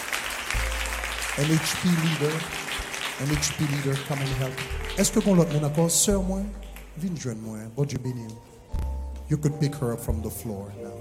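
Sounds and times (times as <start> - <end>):
applause: 0.0 - 7.2
speech: 1.4 - 2.6, 3.2 - 10.9.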